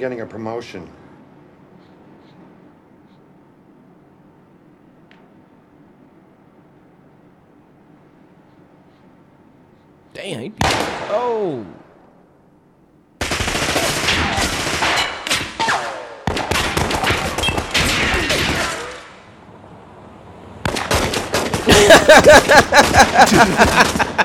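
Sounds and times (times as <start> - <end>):
speech: 0.0 - 1.0, 10.2 - 11.8, 22.2 - 24.1
gunfire from a Draco: 13.2 - 18.9, 20.6 - 22.0
laughter: 21.6 - 24.2.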